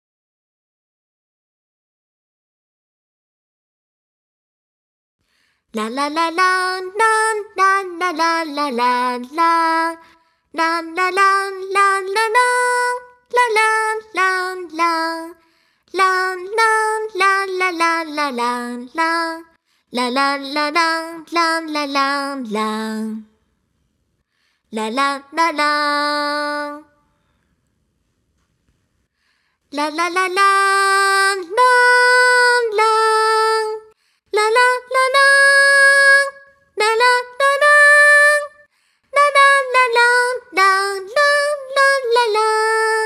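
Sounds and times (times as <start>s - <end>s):
person singing: 5.8s - 23.3s, 24.7s - 27.0s, 29.7s - 38.6s, 39.2s - 43.0s.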